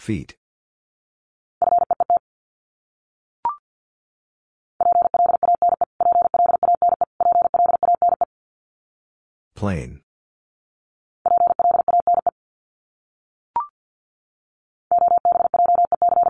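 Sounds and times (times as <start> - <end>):
speech: 0.0 - 0.4, 9.6 - 10.0
rapid Morse code beeps at 50 words per minute: 1.6 - 2.2, 4.8 - 8.3, 11.3 - 12.3, 14.9 - 16.2.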